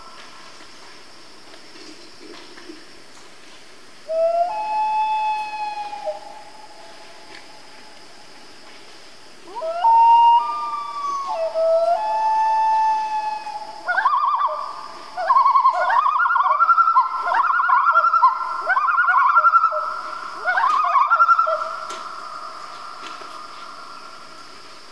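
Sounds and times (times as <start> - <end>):
common loon family group calling in Canada: 4.1 - 8.0, 9.4 - 24.4.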